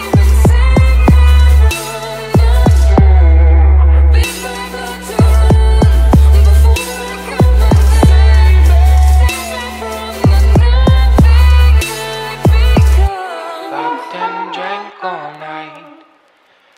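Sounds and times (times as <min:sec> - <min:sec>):
mega funk from car sound system with open trunk: 0:00.0 - 0:13.1.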